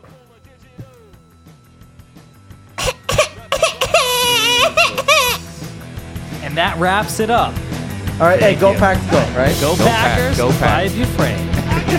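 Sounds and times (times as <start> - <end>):
person imitating a crying baby: 2.8 - 5.6
laughter: 3.4 - 5.7, 9.6 - 10.4, 11.5 - 11.9
speech: 6.6 - 7.6, 8.2 - 11.9.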